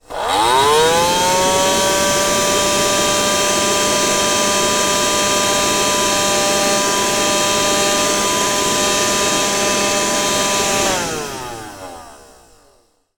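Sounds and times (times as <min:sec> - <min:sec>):
household Dustbuster handheld vacuum cleaner on low battery: 0:00.0 - 0:13.1.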